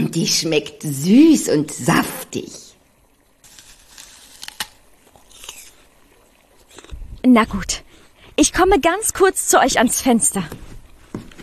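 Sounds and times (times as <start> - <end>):
speech: 0.1 - 2.7, 7.2 - 7.8, 8.4 - 10.8
someone biting into the green half of a fruit: 3.4 - 5.9, 6.6 - 7.2.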